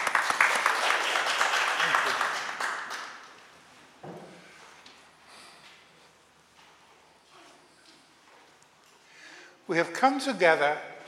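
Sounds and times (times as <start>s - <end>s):
crowd clapping: 0.0s - 3.5s
speech: 9.7s - 10.9s.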